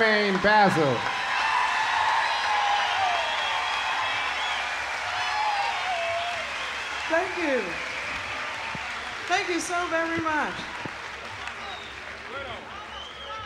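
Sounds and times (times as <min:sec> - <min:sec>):
speech: 0:00.0 - 0:01.2, 0:09.3 - 0:10.8
festival crowd cheering and applauding: 0:00.0 - 0:13.4
scattered whoops and a sliding shout: 0:01.0 - 0:09.1.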